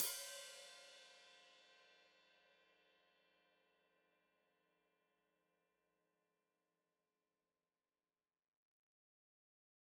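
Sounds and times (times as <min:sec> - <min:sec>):
open hi-hat played with foot: 0:00.0 - 0:00.9.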